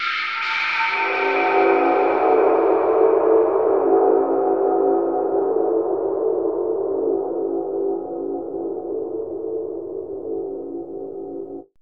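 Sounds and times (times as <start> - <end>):
mysterious ambient music: 0.0 - 11.7.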